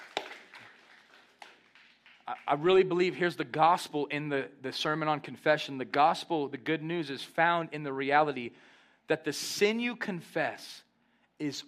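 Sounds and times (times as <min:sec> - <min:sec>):
audience member clapping: 0:00.0 - 0:02.7
speech: 0:02.3 - 0:10.8, 0:11.4 - 0:11.6.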